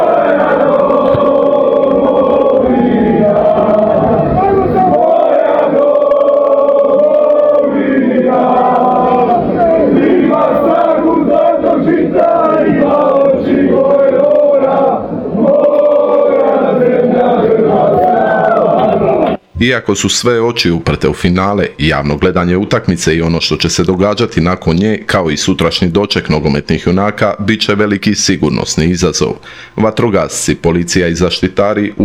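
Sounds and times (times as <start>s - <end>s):
Croatian football fans singing together in Moscow: 0.0s - 25.6s
speech: 19.6s - 32.0s.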